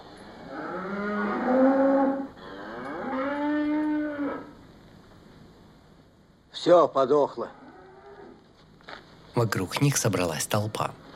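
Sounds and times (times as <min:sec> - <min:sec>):
cow mooing: 0:00.3 - 0:04.5
speech: 0:06.6 - 0:07.6, 0:09.4 - 0:11.0.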